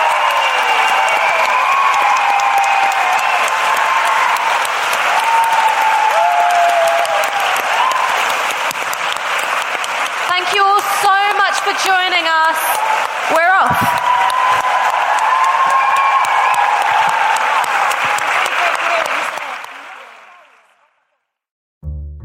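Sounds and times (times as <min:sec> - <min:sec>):
cheers and whistles: 0:00.0 - 0:08.6, 0:12.5 - 0:20.8
large audience applause: 0:00.0 - 0:21.2.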